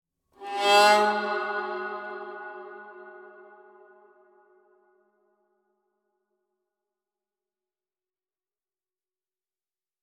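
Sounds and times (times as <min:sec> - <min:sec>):
viola: 0:00.4 - 0:03.3.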